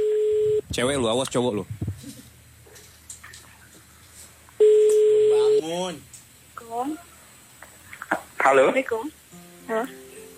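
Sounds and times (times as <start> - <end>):
phone call ringing while connecting: 0.0 - 0.6, 4.6 - 5.7
speech: 0.7 - 1.9, 5.6 - 6.1, 6.7 - 7.1, 8.4 - 10.0.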